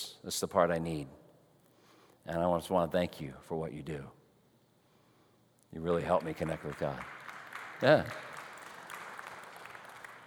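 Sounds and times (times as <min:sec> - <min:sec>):
speech: 0:00.0 - 0:01.2, 0:02.3 - 0:04.2, 0:05.7 - 0:07.2, 0:07.8 - 0:08.2
audience clapping: 0:06.0 - 0:10.2.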